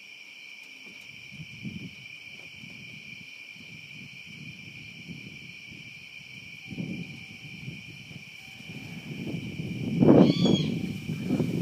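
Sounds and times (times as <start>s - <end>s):
strange bird call at night: 10.0s - 11.5s.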